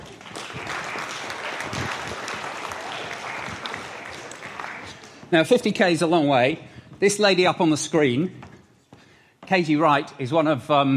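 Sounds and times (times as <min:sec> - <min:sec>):
audience applause: 0:00.0 - 0:05.4
speech: 0:05.3 - 0:08.4, 0:09.5 - 0:10.9.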